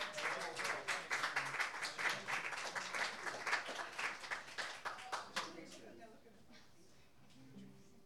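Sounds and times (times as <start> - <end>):
audience applause welcoming a singer: 0.0 - 5.7.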